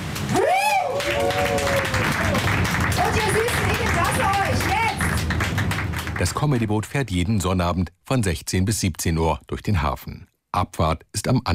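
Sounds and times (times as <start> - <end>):
audience applause on a comedy boat touring a harbour: 0.0 - 6.8
speech: 6.2 - 11.5.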